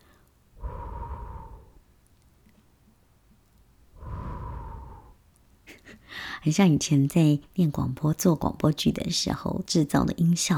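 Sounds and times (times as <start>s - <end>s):
exhaling into a microphone for ASMR: 0.6s - 1.9s, 3.9s - 5.2s
speech: 6.4s - 10.5s.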